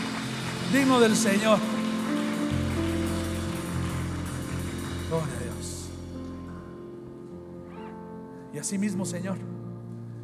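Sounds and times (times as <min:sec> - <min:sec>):
audience applause: 0:00.0 - 0:06.0
speech: 0:00.7 - 0:01.8, 0:05.1 - 0:05.4, 0:08.6 - 0:09.6.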